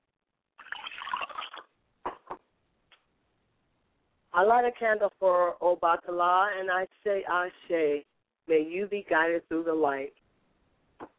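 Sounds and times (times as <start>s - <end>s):
liquid being poured as libation: 0.6s - 1.8s
speech: 4.4s - 10.2s.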